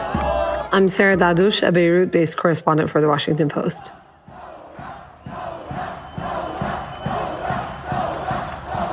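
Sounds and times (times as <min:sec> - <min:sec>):
speech: 0:00.7 - 0:04.0
protest crowd chanting in the street: 0:03.6 - 0:08.9.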